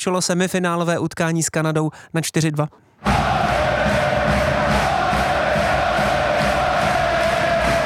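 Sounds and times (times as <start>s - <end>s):
speech: 0.0s - 3.3s
hockey arena fans chanting: 3.0s - 7.8s.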